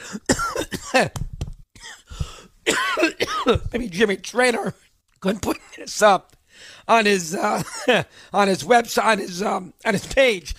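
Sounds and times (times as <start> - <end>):
person coughing from choking on food: 0.0 - 1.2, 1.8 - 3.7, 7.5 - 8.1
speech: 1.0 - 1.2, 3.5 - 10.5.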